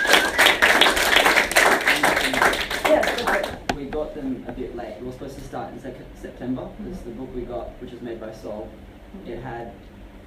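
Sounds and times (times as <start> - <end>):
audience applause: 0.0 - 3.6
speech: 4.6 - 10.0.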